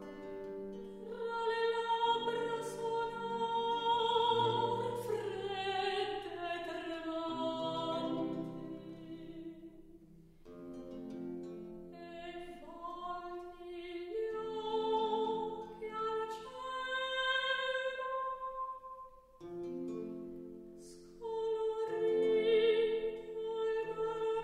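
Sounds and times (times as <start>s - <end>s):
dialogue sung in recitative: 0.9s - 9.8s, 12.0s - 19.0s, 20.8s - 24.4s.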